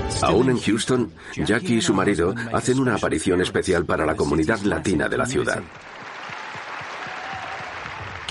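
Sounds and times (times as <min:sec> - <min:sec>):
speech: 0:00.1 - 0:05.9
audience applause in Houston: 0:04.8 - 0:08.2.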